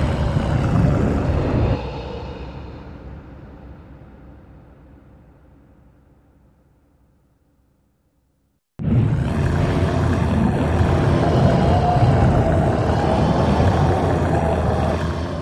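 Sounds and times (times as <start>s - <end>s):
lion breath through reverb processing for ghostly beast: 0.0s - 5.8s, 9.0s - 15.4s.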